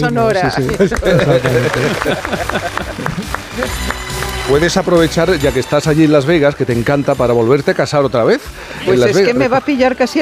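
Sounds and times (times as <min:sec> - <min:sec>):
speech: 0:00.0 - 0:03.9, 0:04.5 - 0:10.2
small group clapping: 0:00.0 - 0:06.1
people talking and laughing: 0:00.0 - 0:10.2.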